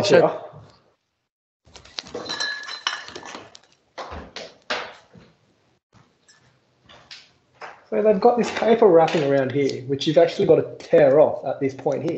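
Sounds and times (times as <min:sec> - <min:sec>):
speech: 0:00.0 - 0:00.4, 0:07.9 - 0:12.1
glass bottles clinking as one is fetched: 0:02.1 - 0:03.6.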